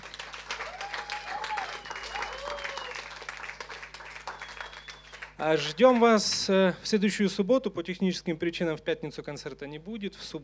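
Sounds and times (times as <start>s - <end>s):
concert audience applause: 0.0s - 5.7s
whoops: 0.5s - 3.1s
whistle: 1.4s - 3.0s, 4.3s - 5.3s
speech: 5.4s - 10.4s.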